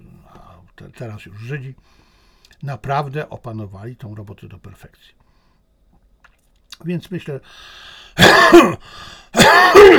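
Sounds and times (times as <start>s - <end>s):
speech: 0.8s - 5.2s, 6.8s - 9.9s
coughing and throat clearing from a person with COPD: 8.2s - 8.8s, 9.4s - 9.9s.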